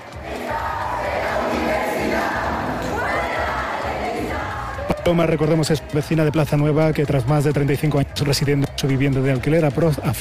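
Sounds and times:
students chanting in university corridors: 0.0s - 6.3s
speech: 5.1s - 10.2s.

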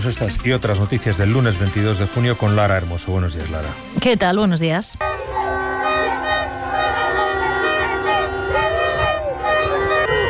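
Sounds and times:
speech: 0.0s - 5.4s
city street noise of Bogota: 0.0s - 10.2s
car horns honking: 5.0s - 10.2s.

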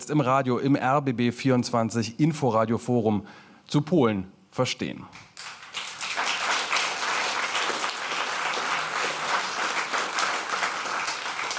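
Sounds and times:
speech: 0.0s - 5.5s
packed audience applauding at a forum evening in a Berlin rooftop lounge: 5.3s - 11.5s.

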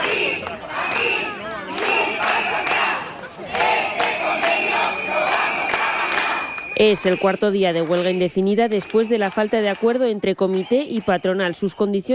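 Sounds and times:
large crowd of protesters chanting in the street: 0.0s - 8.3s
whistles: 4.7s - 7.4s
speech: 6.8s - 12.1s.

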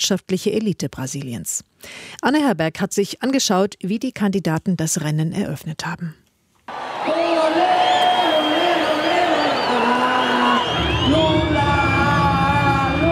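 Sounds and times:
speech: 0.0s - 6.8s
crowd chanting: 6.7s - 12.2s
stadium crowd cheering at election rally: 6.7s - 13.1s.

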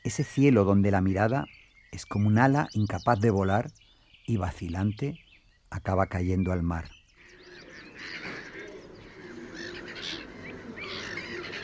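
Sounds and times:
speech: 0.1s - 7.0s
black-headed gulls calling: 6.1s - 11.6s.

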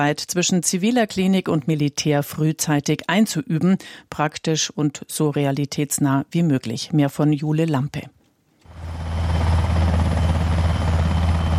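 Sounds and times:
speech: 0.0s - 8.2s
helicopter landing, rotor noise: 8.7s - 11.5s.

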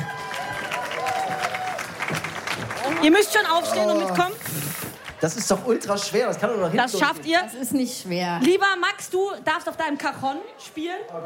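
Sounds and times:
audience applause greeting a performer: 0.0s - 6.4s
speech: 2.9s - 11.2s.

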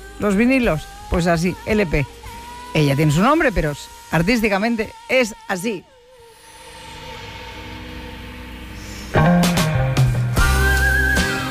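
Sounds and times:
speech: 0.2s - 5.9s
full band playing: 9.2s - 11.5s
woman whistling a melody in a song: 9.2s - 11.5s.

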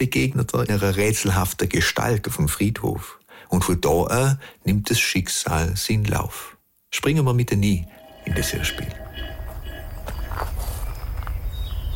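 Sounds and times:
speech: 0.0s - 9.0s
steady low rumble: 7.6s - 11.4s
slow footsteps along graveyard rows in a village cemetery: 7.9s - 11.8s.

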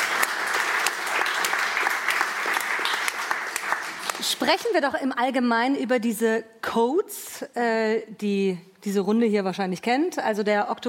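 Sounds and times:
audience applause: 0.0s - 4.3s
speech: 4.4s - 10.8s.

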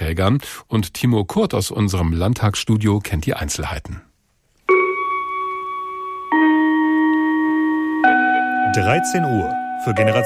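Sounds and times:
speech: 0.1s - 4.1s, 8.7s - 10.2s
school bell gong ending the lesson: 4.7s - 10.2s.

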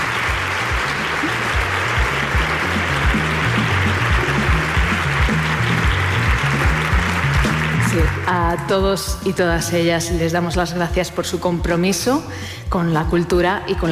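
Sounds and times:
audience applause: 0.0s - 8.4s
speech: 8.5s - 13.9s.

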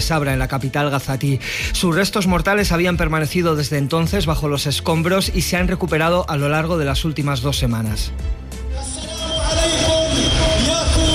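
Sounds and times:
speech: 0.0s - 8.5s
funeral ceremony ambience: 8.2s - 11.1s.

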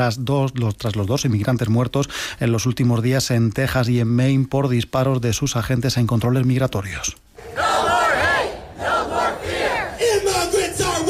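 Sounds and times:
speech: 0.0s - 7.6s
protest crowd chanting: 7.4s - 11.0s.

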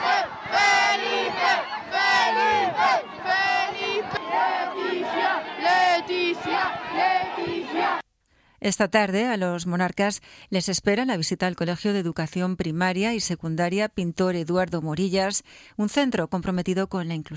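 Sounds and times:
crowd cheering and chanting for the king and queen: 0.0s - 8.0s
speech: 8.6s - 17.3s.

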